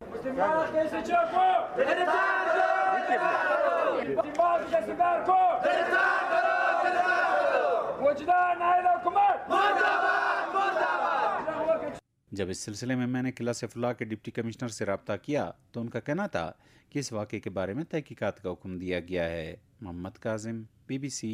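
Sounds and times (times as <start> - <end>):
speech: 0.3 - 6.1, 12.4 - 21.3
protesters in Qila Saifullah chanting slogans for their demands: 1.0 - 8.0, 8.8 - 12.0.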